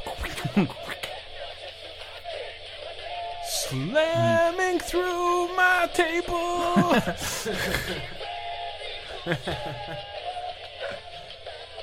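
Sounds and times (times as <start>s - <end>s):
DJ record scratching: 0.0s - 2.3s, 3.5s - 7.1s
dense, noisy rock track: 0.0s - 11.8s
laughter: 0.2s - 1.0s, 4.2s - 4.4s, 6.4s - 8.2s, 9.1s - 10.2s
speech: 0.4s - 1.0s, 3.7s - 8.2s, 9.2s - 10.1s.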